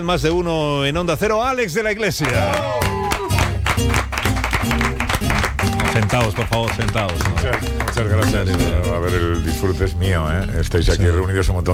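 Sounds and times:
speech: 0.0 - 3.0, 5.9 - 11.7
studio audience applause: 2.2 - 8.9
sustained musical backing with low tones: 2.3 - 11.7.

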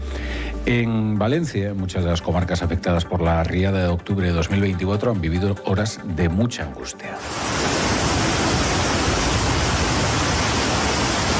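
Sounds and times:
speech: 0.7 - 7.8
torrential rain pouring down: 7.2 - 11.3.

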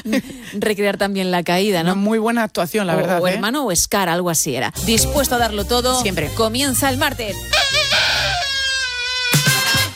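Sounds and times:
speech: 0.0 - 7.6
voice imitating a jazz trumpet: 7.5 - 9.8.

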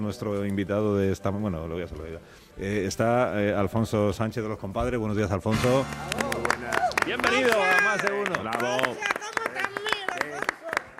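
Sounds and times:
speech: 0.0 - 9.1
flamenco palmas-style hand clapping: 5.6 - 10.9.

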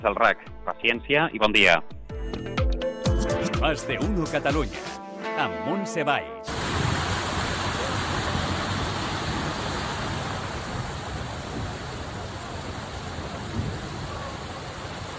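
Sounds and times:
speech: 0.0 - 2.0, 3.2 - 6.6
heavy rain falling in Granollers: 6.5 - 15.1.

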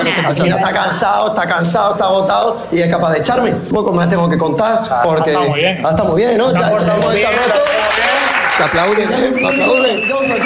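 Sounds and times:
speech: 0.2 - 10.4
audience applause: 6.6 - 10.4.

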